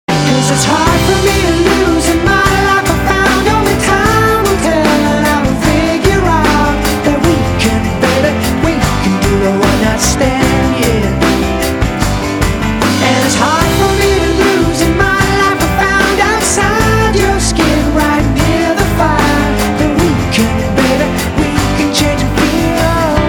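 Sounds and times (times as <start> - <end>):
music loop: 0.1 - 23.2.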